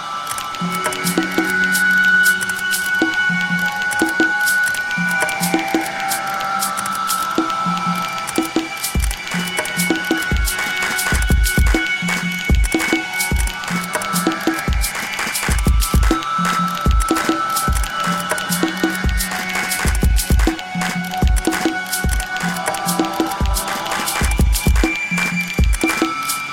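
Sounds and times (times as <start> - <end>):
music beat: 0.3 - 26.4.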